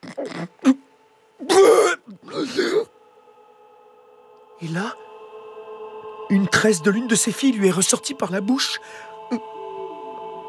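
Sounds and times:
hiccup imitated by the storyteller: 0.0 - 0.8, 1.4 - 2.9
speech: 0.1 - 0.8, 4.6 - 5.0, 6.4 - 9.5.

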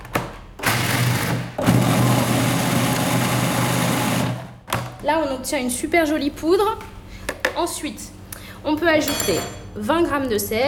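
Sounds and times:
food processor grinding peanuts into powder: 0.6 - 4.6
speech: 5.1 - 6.9, 7.6 - 10.6.

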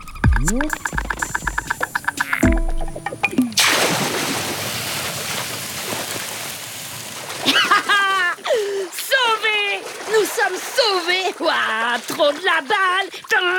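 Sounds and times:
animated voices: 0.0 - 2.5
water churning and sloshing from animal swimming: 0.0 - 13.5
speech: 0.4 - 1.3, 11.6 - 13.5
animal splashing into a river: 0.5 - 8.2, 9.4 - 12.5.

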